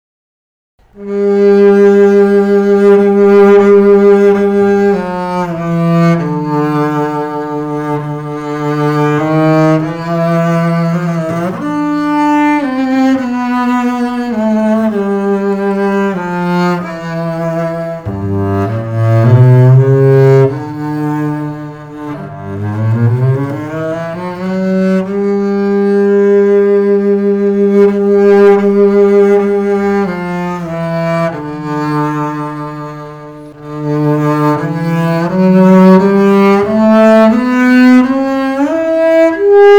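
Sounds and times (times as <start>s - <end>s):
antique double bass: 1.1s - 39.6s.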